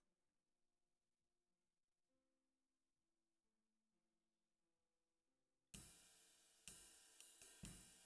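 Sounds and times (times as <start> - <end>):
snare drum: 5.8 - 8.0.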